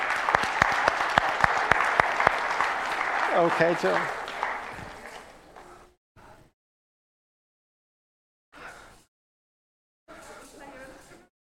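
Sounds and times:
audience applause: 0:00.0 - 0:05.8
speech: 0:03.4 - 0:04.2.

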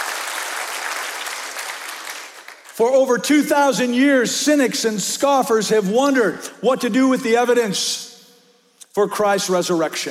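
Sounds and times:
audience applause: 0:00.0 - 0:02.7
speech: 0:02.8 - 0:08.1, 0:09.0 - 0:10.0.

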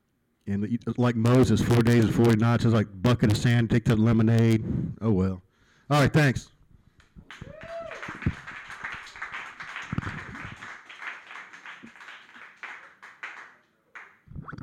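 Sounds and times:
speech: 0:00.5 - 0:06.5
faint applause from a small audience for a comedian at an open mic: 0:07.2 - 0:14.2.

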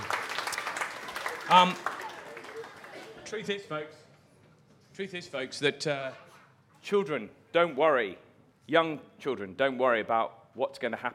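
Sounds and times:
crowd applauding: 0:00.0 - 0:03.6
speech: 0:01.5 - 0:01.9, 0:03.3 - 0:04.0, 0:05.0 - 0:06.2, 0:06.8 - 0:11.1.

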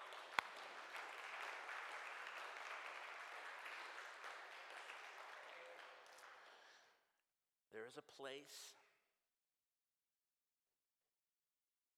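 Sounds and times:
audience clapping: 0:00.0 - 0:06.9
speech: 0:07.8 - 0:08.8.

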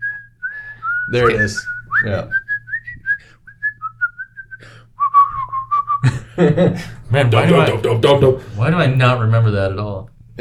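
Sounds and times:
person whistling a film theme tune: 0:00.0 - 0:06.0
speech: 0:01.1 - 0:02.4, 0:06.4 - 0:10.3
laughter: 0:06.0 - 0:08.4.

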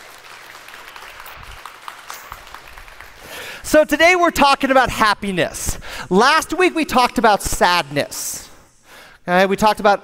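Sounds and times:
audience round of applause: 0:00.0 - 0:03.6
speech: 0:03.7 - 0:08.3, 0:09.3 - 0:10.0.

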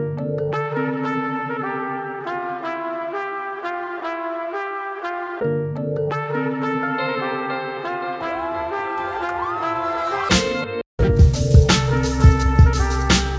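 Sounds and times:
funk music in C: 0:00.1 - 0:03.3, 0:05.2 - 0:13.3.

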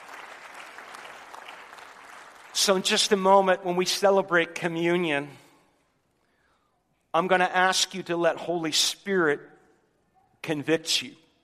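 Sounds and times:
audience applause: 0:00.0 - 0:03.1
speech: 0:02.6 - 0:05.4, 0:07.1 - 0:09.5, 0:10.4 - 0:11.2.

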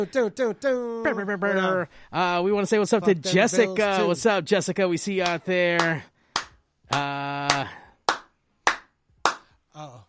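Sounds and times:
speech: 0:00.0 - 0:06.1, 0:06.9 - 0:07.8
hand clapping: 0:05.2 - 0:09.6.

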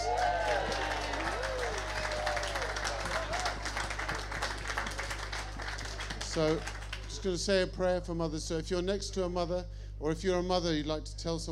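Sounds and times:
people whooping and cheering: 0:00.0 - 0:06.5
crowd applauding for mothers: 0:00.0 - 0:07.4
low steady hum: 0:00.0 - 0:11.4
speech: 0:06.4 - 0:11.4.

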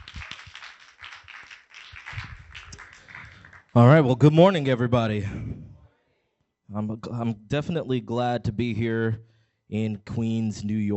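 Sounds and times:
audience applause: 0:00.0 - 0:03.8
speech: 0:03.8 - 0:05.6, 0:06.7 - 0:10.9.

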